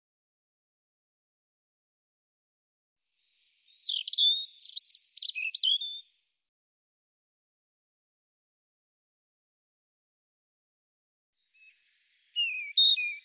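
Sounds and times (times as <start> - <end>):
European robin singing: 3.2 - 6.1, 11.5 - 13.2.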